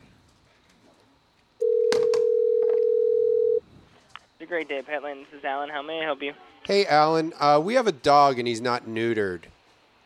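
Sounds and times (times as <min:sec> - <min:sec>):
telephone dial tone: 0:01.6 - 0:03.6
speech: 0:04.5 - 0:09.6.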